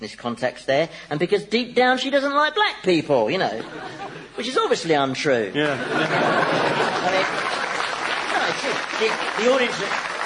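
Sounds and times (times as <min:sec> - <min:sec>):
speech: 0:00.0 - 0:07.6, 0:08.6 - 0:10.1
laughter: 0:03.4 - 0:09.8
audience applause: 0:06.0 - 0:10.2.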